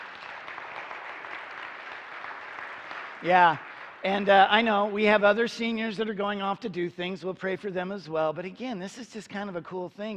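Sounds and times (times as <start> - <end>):
audience applause: 0.0 - 4.7
speech: 3.2 - 10.1.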